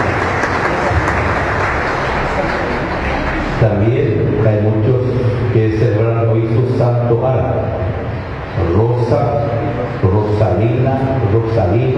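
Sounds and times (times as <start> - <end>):
audience applause: 0.0 - 3.6
speech: 3.6 - 7.9, 8.6 - 11.9.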